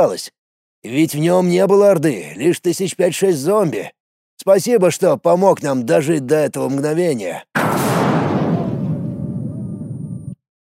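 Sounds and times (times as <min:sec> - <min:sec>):
speech: 0:00.0 - 0:08.0
single loud explosion at a gas station: 0:07.6 - 0:10.4.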